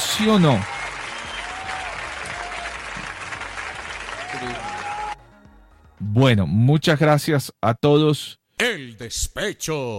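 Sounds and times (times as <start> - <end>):
audience applause: 0.0 - 5.2
speech: 0.2 - 0.7, 6.0 - 9.9.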